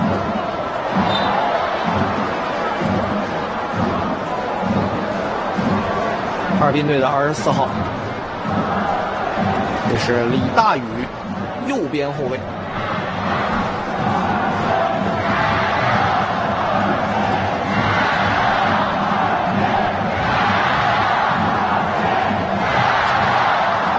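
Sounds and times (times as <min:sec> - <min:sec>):
football fans cheering and chanting in a stadium at a Harbin team match: 0:00.0 - 0:23.9
speech: 0:06.6 - 0:08.0, 0:09.9 - 0:12.6.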